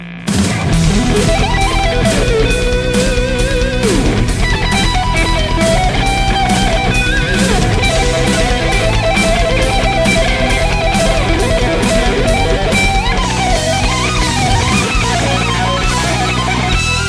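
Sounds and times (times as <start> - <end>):
guitar solo: 0.0 - 17.0.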